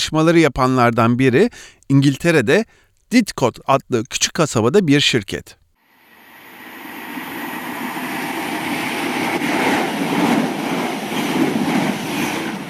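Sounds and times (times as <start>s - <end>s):
speech: 0.0s - 5.6s
train passing through the railway station of a small English town near Oxford: 5.9s - 12.6s.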